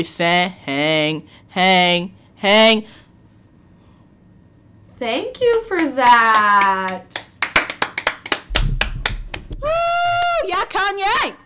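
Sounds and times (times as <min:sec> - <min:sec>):
speech: 0:00.0 - 0:03.0, 0:05.0 - 0:07.2, 0:10.5 - 0:11.4
audience clapping on a live unplugged acoustic recording: 0:05.5 - 0:10.9
deep low-pitched thump: 0:08.5 - 0:10.1.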